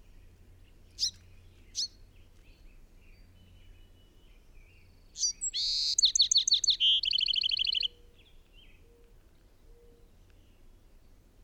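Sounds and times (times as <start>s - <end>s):
high bird chirps: 1.0s - 2.0s, 5.2s - 8.0s.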